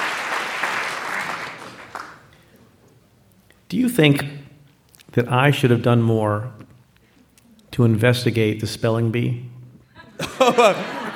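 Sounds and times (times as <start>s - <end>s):
hand clapping: 0.0s - 2.4s
speech: 3.7s - 4.4s, 5.2s - 6.7s, 7.8s - 9.5s, 10.2s - 11.0s
laughter: 10.0s - 11.1s.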